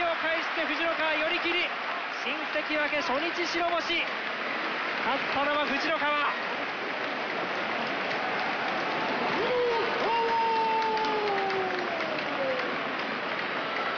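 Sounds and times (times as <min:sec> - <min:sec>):
sumo arena crowd cheering and applauding: 0:00.0 - 0:13.9
speech: 0:01.0 - 0:06.5
long drawn-out shout: 0:08.1 - 0:13.9.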